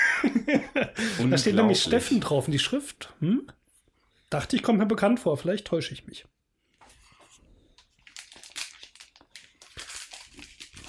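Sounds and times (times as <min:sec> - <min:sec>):
speech: 0:00.2 - 0:03.6, 0:04.3 - 0:06.4
gift wrapping paper crinkling while unwrapping: 0:07.2 - 0:10.8.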